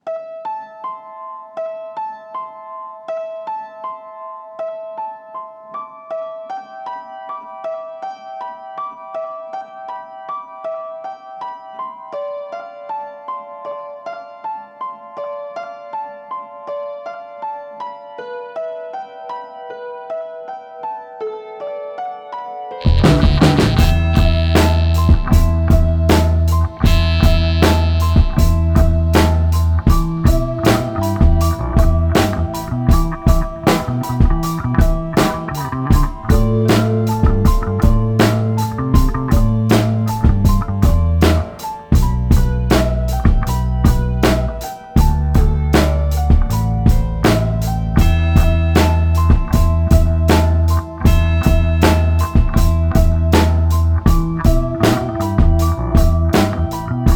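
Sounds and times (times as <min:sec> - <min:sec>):
instrumental interlude: 0:22.8 - 0:57.1.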